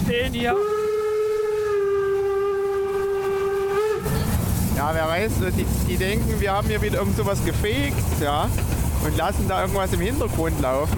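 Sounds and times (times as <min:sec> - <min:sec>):
low rumbling noise: 0:00.0 - 0:10.9
speech: 0:00.1 - 0:00.8, 0:04.8 - 0:10.9
steam locomotive whistle: 0:00.5 - 0:04.4.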